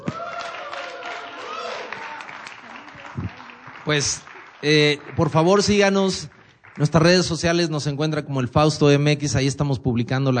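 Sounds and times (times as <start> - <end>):
applause: 0.0 - 7.7
speech: 3.9 - 10.3.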